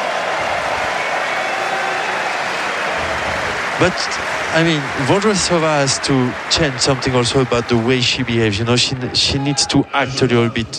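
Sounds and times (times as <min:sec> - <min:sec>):
tennis crowd applauding: 0:00.0 - 0:10.4
speech: 0:03.8 - 0:10.7.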